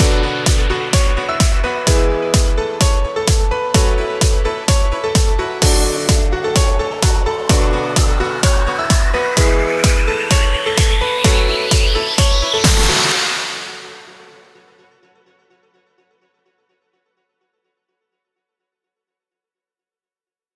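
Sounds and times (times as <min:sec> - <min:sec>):
instrumental music: 0:00.0 - 0:14.6.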